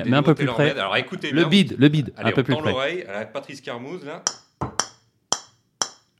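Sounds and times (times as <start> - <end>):
speech: 0.0 - 4.7
ball tapped on a carbon golf club face: 4.3 - 6.1.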